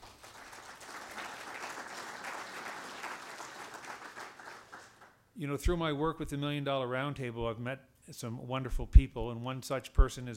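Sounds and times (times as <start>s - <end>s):
audience applause: 0.0s - 5.2s
speech: 5.4s - 10.3s.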